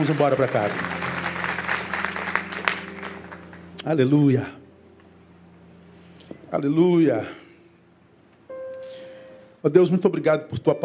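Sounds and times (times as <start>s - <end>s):
speech: 0.0s - 1.0s, 3.8s - 4.6s, 6.5s - 7.4s, 9.6s - 10.8s
audience applause: 0.0s - 3.6s.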